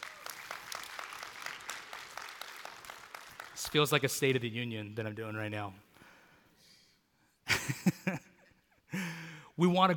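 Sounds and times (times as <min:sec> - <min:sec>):
audience clapping: 0:00.0 - 0:04.4
speech: 0:03.6 - 0:05.9, 0:09.6 - 0:09.9.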